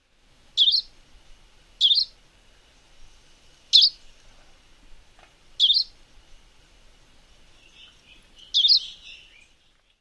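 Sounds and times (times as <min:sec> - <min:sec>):
calls: 0:00.6 - 0:00.9, 0:01.8 - 0:02.2, 0:05.6 - 0:05.9, 0:07.6 - 0:09.5.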